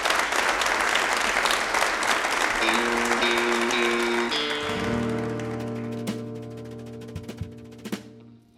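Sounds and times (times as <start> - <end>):
audience applauding a band at a live radio show in Lexington: 0.0 - 8.1.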